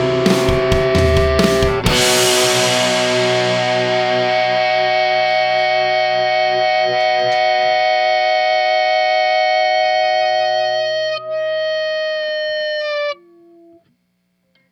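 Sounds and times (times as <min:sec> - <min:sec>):
drums: 0:00.0 - 0:05.9
guitar: 0:00.0 - 0:14.6.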